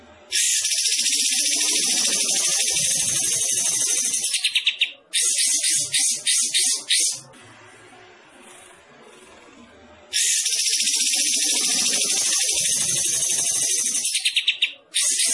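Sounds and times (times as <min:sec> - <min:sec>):
bulbul singing rapid bright chattering notes: 0:00.3 - 0:07.2, 0:10.1 - 0:15.3.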